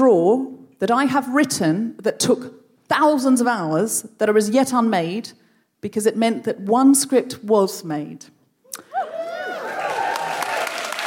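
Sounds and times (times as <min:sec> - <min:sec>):
speech: 0:00.0 - 0:08.9
whoops and cheering voices: 0:08.8 - 0:11.0
crowd applauding: 0:09.0 - 0:11.0.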